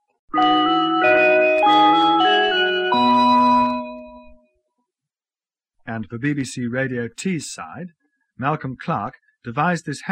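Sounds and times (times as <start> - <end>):
ring-modulated electronic chime call sign: 0.4 - 4.5
speech: 6.0 - 10.1.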